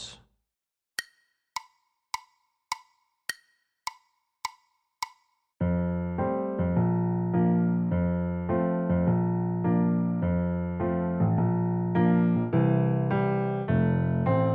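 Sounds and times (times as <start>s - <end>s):
piano: 5.7s - 14.5s.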